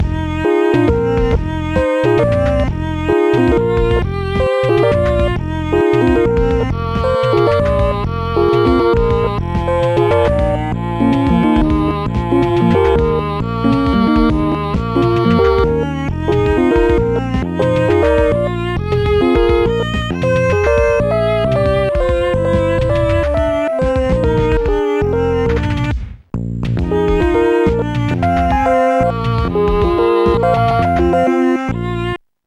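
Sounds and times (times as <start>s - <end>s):
mellow music in minor: 0.0s - 32.2s.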